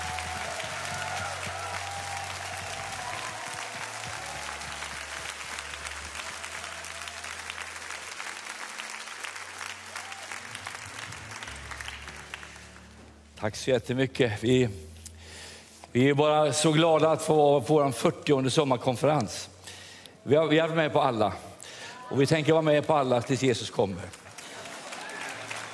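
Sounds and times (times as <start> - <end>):
audience giving warm applause: 0.0 - 13.0, 24.1 - 25.7
speech: 13.4 - 14.9, 15.9 - 19.5, 20.2 - 21.5, 22.1 - 24.2.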